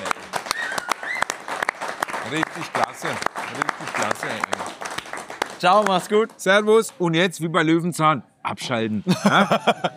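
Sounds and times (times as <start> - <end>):
applause: 0.0 - 7.0
speech: 2.3 - 4.8, 5.6 - 9.9
laughter: 9.0 - 9.9.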